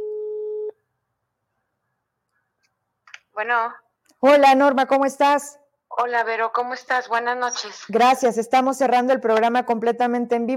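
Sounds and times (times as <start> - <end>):
telephone line tone while dialing a call: 0.0 - 0.8
speech: 3.4 - 10.5.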